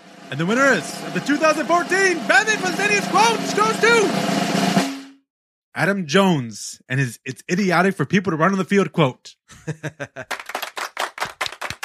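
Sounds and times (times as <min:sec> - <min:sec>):
speech: 0:00.3 - 0:04.4, 0:05.8 - 0:10.5
laughter: 0:09.5 - 0:10.6
golf clap: 0:10.3 - 0:11.8.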